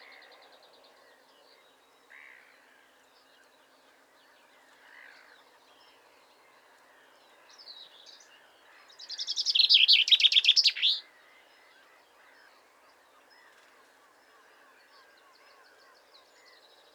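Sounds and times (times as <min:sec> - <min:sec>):
Common chaffinch Fringilla coelebs singing: 0:09.2 - 0:11.0.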